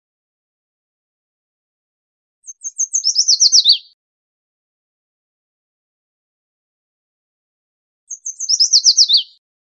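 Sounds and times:
yellow warbler singing: 2.4 - 4.0, 8.1 - 9.4.

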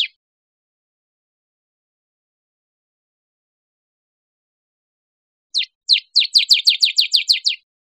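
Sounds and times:
bird chirping: 5.6 - 7.7.

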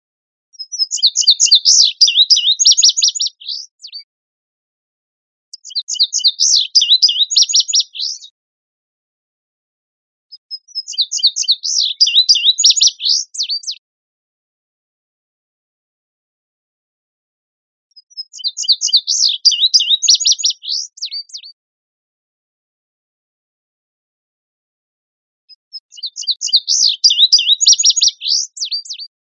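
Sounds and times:
Indigo Bunting singing: 0.6 - 4.0, 5.5 - 8.3, 10.6 - 13.8, 18.3 - 21.5, 26.0 - 29.0.

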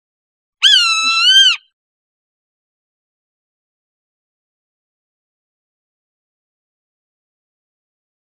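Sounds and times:
Swainson's hawk screaming: 0.6 - 1.6.

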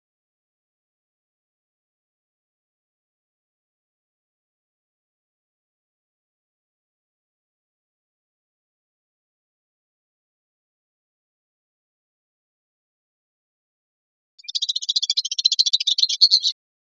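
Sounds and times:
White-throated swift giving a shrill rapid chattering trill: 14.4 - 16.5.

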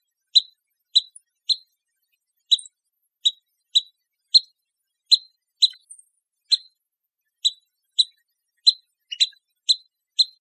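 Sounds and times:
pygmy nuthatch calling: 0.4 - 1.7, 2.5 - 4.5, 5.1 - 6.7, 7.4 - 10.4.

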